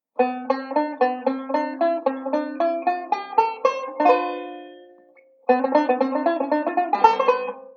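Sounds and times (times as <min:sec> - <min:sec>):
banjo playing a ii V pattern: 0:00.0 - 0:07.7.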